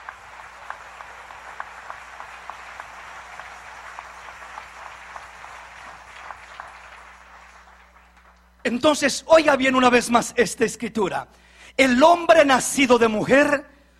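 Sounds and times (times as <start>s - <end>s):
crowd applause: 0.0s - 8.7s
speech: 8.7s - 13.7s.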